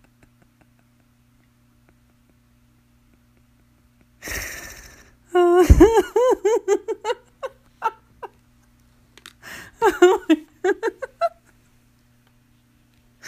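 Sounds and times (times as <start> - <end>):
people laughing in a laughing challenge: 4.3 - 8.3, 9.8 - 11.4.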